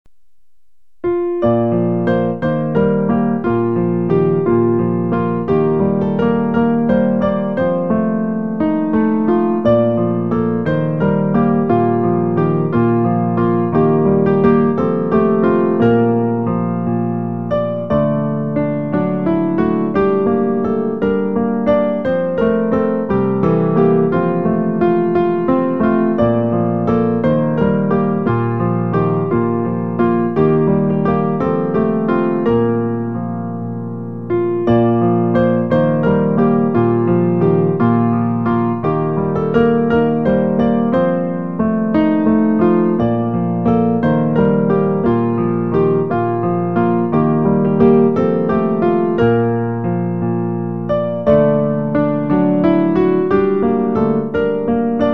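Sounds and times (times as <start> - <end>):
piano playing: 0.1 - 55.1.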